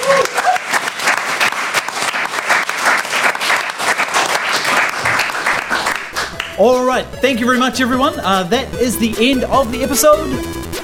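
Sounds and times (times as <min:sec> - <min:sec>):
audience applause: 0:00.0 - 0:06.6
speech: 0:06.6 - 0:10.6.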